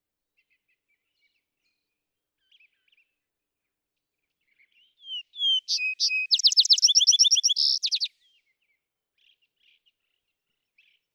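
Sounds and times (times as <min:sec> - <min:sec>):
vesper sparrow singing: 0:05.0 - 0:08.1.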